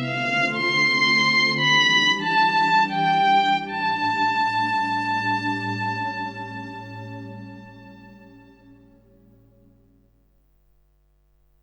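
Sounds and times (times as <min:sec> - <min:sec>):
violin on tape: 0:00.0 - 0:08.9.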